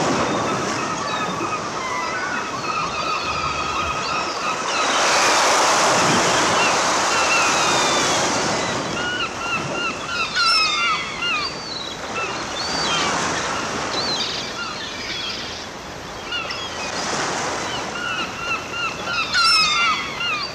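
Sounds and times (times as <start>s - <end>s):
seagulls calling at the seaside: 0.0s - 20.5s.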